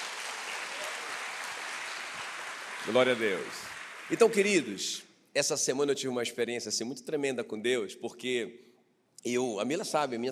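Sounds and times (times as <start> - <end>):
audience applauding: 0.0 - 4.8
speech: 2.8 - 10.3.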